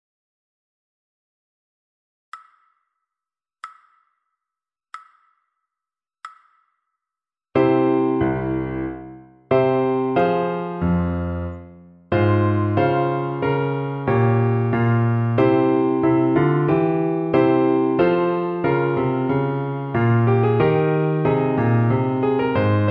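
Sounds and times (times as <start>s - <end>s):
piano: 7.6s - 22.8s.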